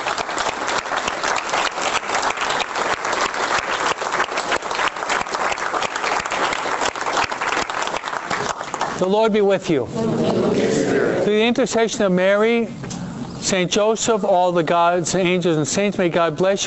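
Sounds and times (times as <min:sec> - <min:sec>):
audience applause: 0:00.0 - 0:09.0
speech: 0:09.0 - 0:12.8, 0:13.4 - 0:16.6.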